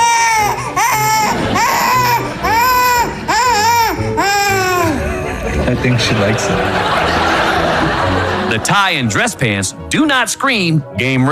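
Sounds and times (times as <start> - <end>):
baby crying: 0.0 - 5.6
laughter: 1.1 - 2.9, 4.5 - 9.0
speech: 5.8 - 7.2, 8.6 - 11.3.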